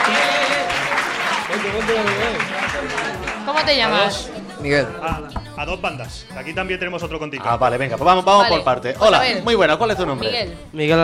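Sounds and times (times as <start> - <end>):
loud applause: 0.0 - 3.7
speech: 1.6 - 11.0.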